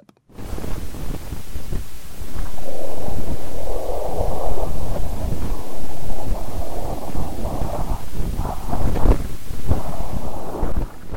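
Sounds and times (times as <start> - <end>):
crackling bursts: 0.3 - 11.1
audification of data with rumbling whooshing noise: 0.4 - 11.1.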